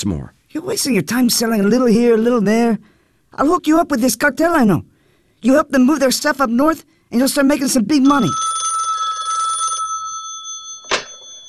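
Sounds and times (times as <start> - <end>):
speech: 0.0 - 8.5
telephone bell ringing: 8.0 - 11.4.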